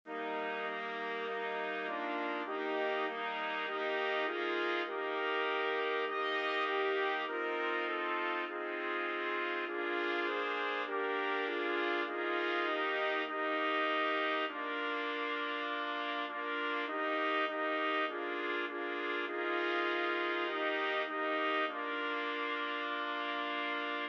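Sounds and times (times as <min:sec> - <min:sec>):
trumpets playing: 0:00.1 - 0:24.0.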